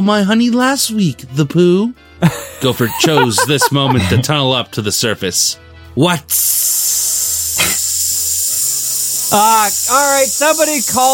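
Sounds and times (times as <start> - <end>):
speech: 0.0 - 7.7, 9.3 - 11.1
laughter: 2.2 - 4.6
hiss of escaping air: 6.3 - 11.1.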